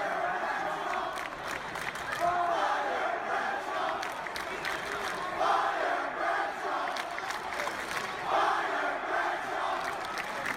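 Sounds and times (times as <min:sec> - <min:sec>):
arena crowd at TD Garden chanting during a SmackDown Live wrestling event: 0:00.0 - 0:10.5.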